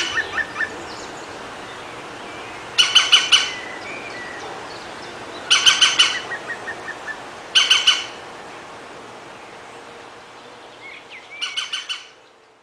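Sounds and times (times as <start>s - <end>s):
European green woodpecker ringing calls: 2.7s - 4.4s, 5.4s - 8.2s, 10.8s - 12.2s.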